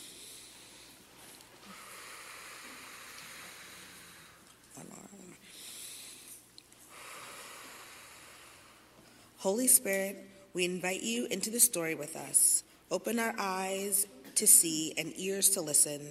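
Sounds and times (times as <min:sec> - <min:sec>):
church congregation breathing deeply together: 0:00.0 - 0:04.6, 0:05.4 - 0:09.4
speech: 0:04.8 - 0:05.7, 0:09.4 - 0:16.0.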